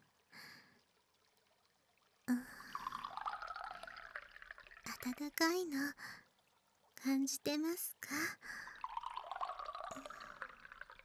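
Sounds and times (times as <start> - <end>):
hot water pouring: 2.3 - 5.3, 8.4 - 11.0
speech: 5.0 - 6.2, 7.0 - 8.7.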